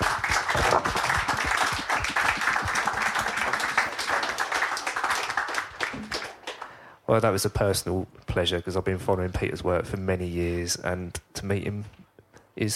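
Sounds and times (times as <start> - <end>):
crowd applauding: 0.0 - 6.9
speech: 7.1 - 12.0.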